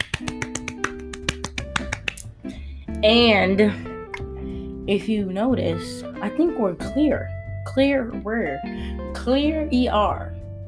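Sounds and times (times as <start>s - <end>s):
hand clapping: 0.0s - 2.3s
speech: 3.0s - 3.9s, 4.9s - 10.3s.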